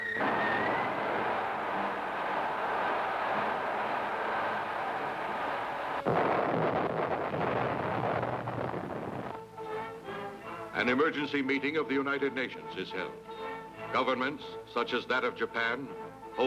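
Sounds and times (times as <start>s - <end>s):
missile explosion against the Himalayan mountains: 0.2s - 9.5s
speech: 10.8s - 13.3s, 13.9s - 16.4s.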